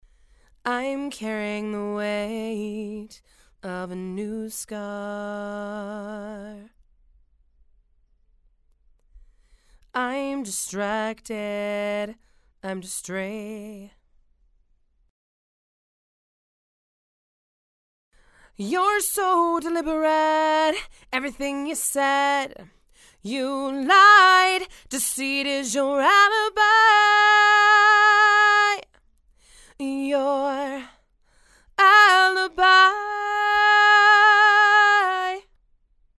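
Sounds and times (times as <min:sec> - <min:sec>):
female vocals: 0:00.6 - 0:06.7, 0:09.9 - 0:14.0, 0:18.4 - 0:29.0, 0:29.6 - 0:35.5.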